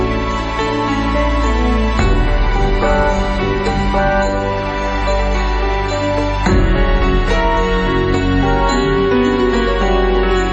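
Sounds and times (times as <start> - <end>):
orchestral sequence: 0.0 - 10.5.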